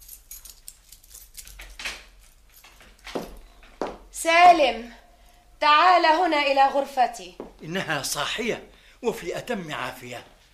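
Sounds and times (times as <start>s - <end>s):
key unlocking and opening a door: 0.0s - 3.5s
speech: 4.2s - 5.0s, 5.6s - 10.3s.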